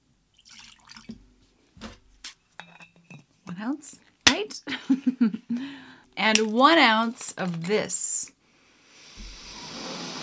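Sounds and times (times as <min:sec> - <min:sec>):
one ounce of vodka poured into a glass for a mixed drink: 0:00.4 - 0:01.2
speech: 0:03.6 - 0:08.1.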